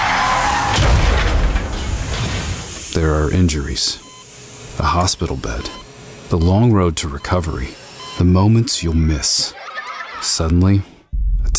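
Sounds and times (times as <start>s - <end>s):
car crash sound effect: 0.0s - 2.8s
speech: 3.0s - 4.1s, 4.8s - 9.6s, 10.2s - 10.9s
laughter: 8.9s - 10.8s.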